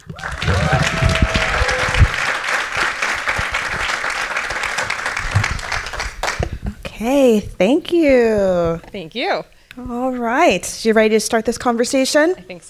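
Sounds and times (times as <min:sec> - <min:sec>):
speech: 0:00.0 - 0:01.0, 0:07.0 - 0:12.6
audience applause: 0:00.0 - 0:06.6.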